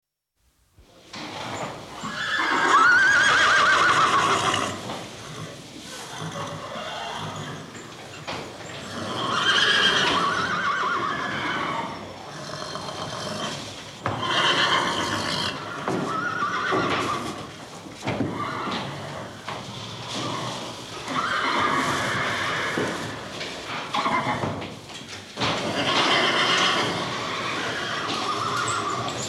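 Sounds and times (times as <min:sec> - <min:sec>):
horse whinnying in a stable: 0:02.0 - 0:07.8, 0:08.8 - 0:17.5, 0:18.3 - 0:19.4, 0:20.1 - 0:23.3, 0:24.0 - 0:24.4, 0:25.7 - 0:29.2.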